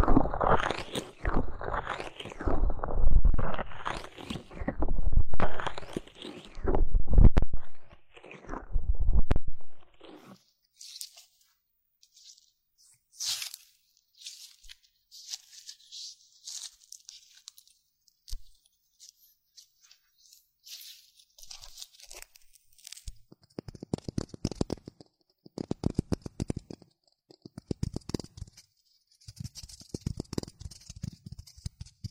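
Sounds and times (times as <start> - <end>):
muffled rubbing and crackling during ear cleaning massage: 0.0 - 11.4, 14.2 - 32.0.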